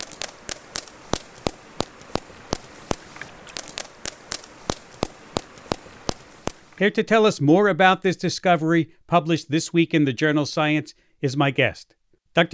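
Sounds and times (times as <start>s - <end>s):
toothed whale vocal fry echolocation clicks: 0.0s - 6.8s
speech: 6.8s - 12.5s.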